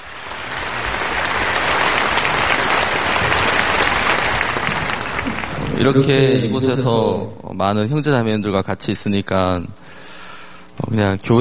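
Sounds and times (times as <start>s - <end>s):
audience applause: 0.0s - 6.6s
speech: 5.8s - 10.0s, 10.8s - 11.4s.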